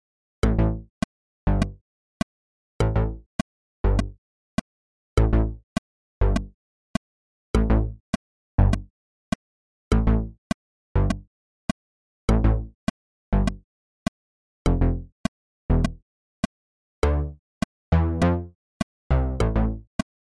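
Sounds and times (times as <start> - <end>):
bass: 0.4 - 1.8, 2.8 - 3.3, 3.8 - 4.2, 5.2 - 5.6, 6.2 - 6.6, 7.5 - 8.9, 9.9 - 11.3, 12.3 - 12.8, 13.3 - 13.6, 14.6 - 16.0, 17.0 - 18.6, 19.1 - 19.9.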